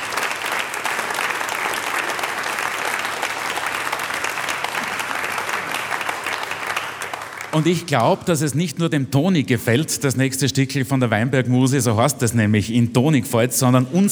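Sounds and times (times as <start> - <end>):
audience applause: 0.0 - 8.3
speech: 7.6 - 14.0.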